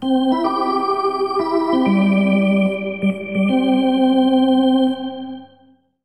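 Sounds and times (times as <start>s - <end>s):
hockey arena organ: 0.0s - 5.6s.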